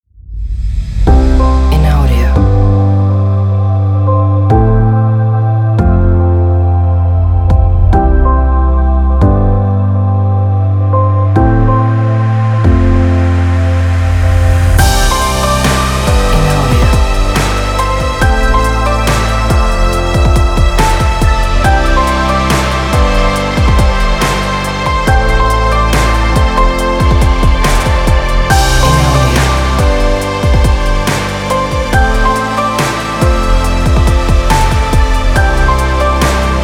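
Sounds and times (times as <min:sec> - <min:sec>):
inspiring motivational electronic music: 0:01.1 - 0:36.6.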